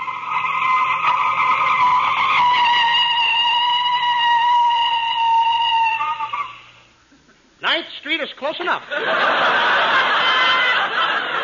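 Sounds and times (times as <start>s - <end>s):
car skidding to a stop with tires squealing: 0.0s - 6.7s
speech: 8.5s - 9.5s
laughter: 8.8s - 11.4s.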